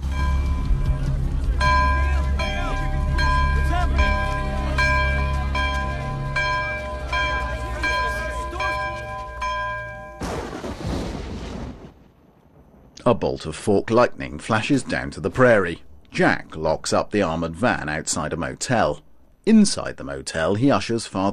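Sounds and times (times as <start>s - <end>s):
monastery bell rung by monks: 0.0s - 10.4s
speech: 13.1s - 21.3s.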